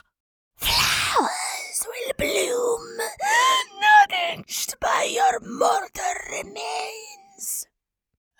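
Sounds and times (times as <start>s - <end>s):
creature sounds: 0.6s - 7.5s.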